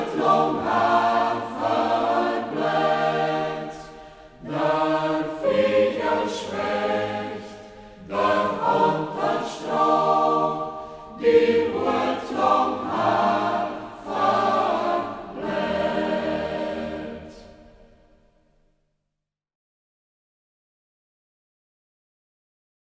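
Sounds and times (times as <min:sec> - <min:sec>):
choir singing in local dialect: 0:00.0 - 0:18.3.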